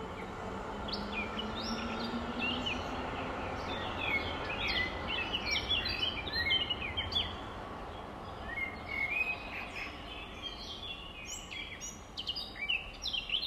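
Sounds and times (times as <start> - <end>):
nightingale singing chirps and trills: 0.2 - 7.4, 8.2 - 13.4.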